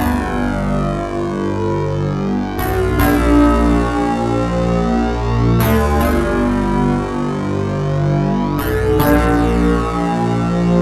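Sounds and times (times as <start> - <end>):
synth bass loops: 0.0 - 10.8.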